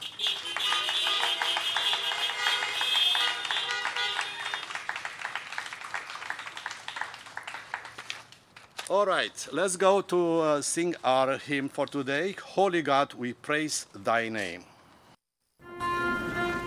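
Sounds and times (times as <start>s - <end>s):
car horns honking: 0.0s - 4.8s
prolonged clapping: 0.0s - 8.9s
speech: 8.9s - 14.7s.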